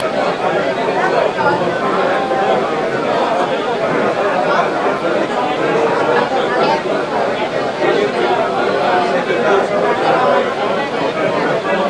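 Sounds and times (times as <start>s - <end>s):
crowd: 0.0s - 11.8s.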